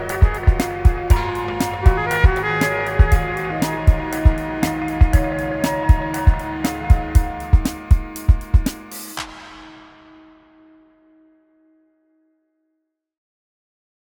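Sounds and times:
inspiring harmony: 0.0 - 10.2.

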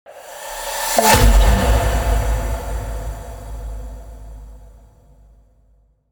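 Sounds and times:
impact: 0.6 - 5.2.

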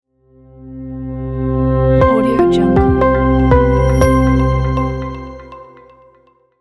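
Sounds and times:
simple logo sound: 2.0 - 6.0.

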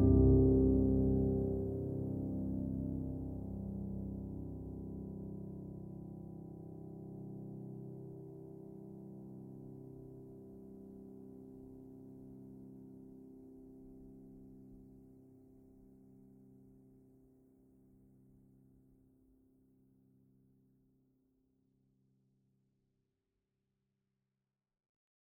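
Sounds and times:
sad piano: 0.0 - 14.3.

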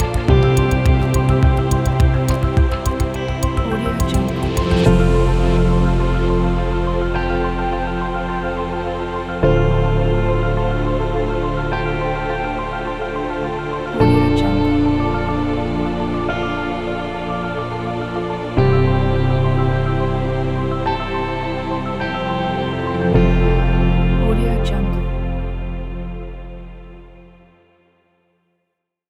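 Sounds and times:
beauty minimalistic background music: 0.0 - 27.5.

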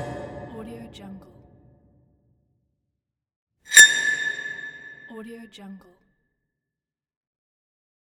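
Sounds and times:
medieval metallic sounds: 3.7 - 5.2.

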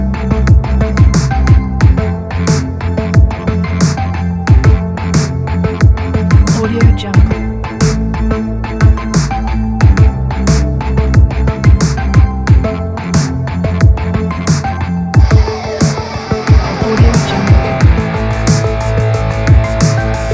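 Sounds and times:
80s synth wave music: 0.0 - 20.3.

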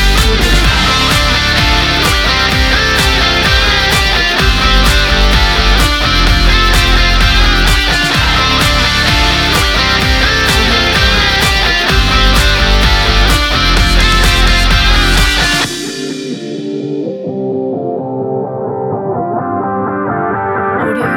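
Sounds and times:
energetic spring pop rock music: 0.0 - 21.1.

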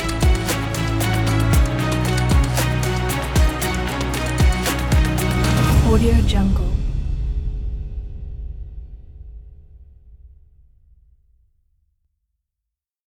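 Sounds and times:
abstract cinematic kit sounds: 0.0 - 10.0.

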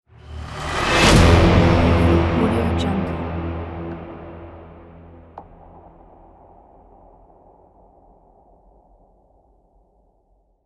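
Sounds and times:
dark cinematic logo button sound: 0.1 - 6.9.

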